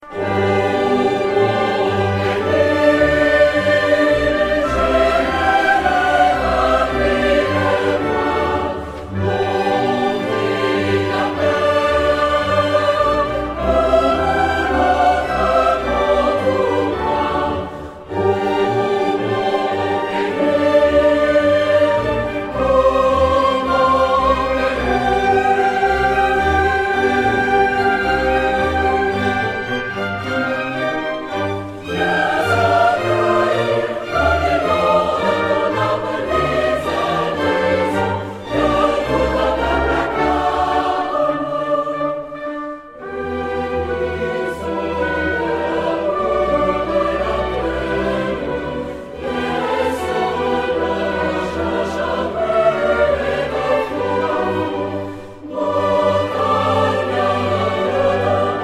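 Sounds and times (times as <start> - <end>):
choir singing: 0.0 - 58.6.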